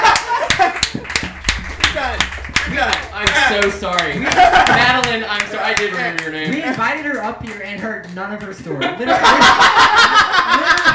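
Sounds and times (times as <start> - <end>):
live crowd clapping: 0.0 - 8.5
laughter: 3.4 - 6.2, 8.8 - 10.9
speech: 3.5 - 10.8.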